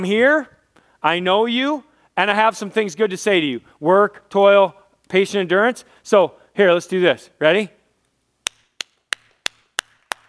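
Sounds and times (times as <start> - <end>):
speech: 0.0 - 7.8
quiet polite golf clap: 8.5 - 10.2.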